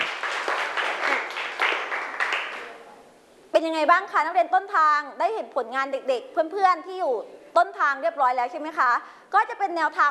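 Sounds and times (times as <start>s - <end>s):
classroom applause for a student: 0.0s - 2.8s
speech: 3.6s - 10.0s.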